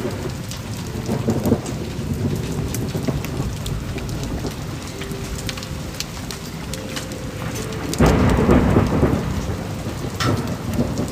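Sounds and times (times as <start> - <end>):
steady rain: 0.0 - 11.1
sharp drip taps: 2.4 - 11.1
thunder-like swell: 3.1 - 11.1.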